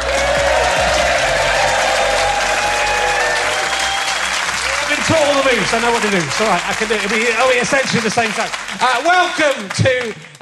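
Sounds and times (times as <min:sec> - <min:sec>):
audience applause at Richmond Theatre welcoming a comedian: 0:00.0 - 0:10.4
speech: 0:05.6 - 0:10.4.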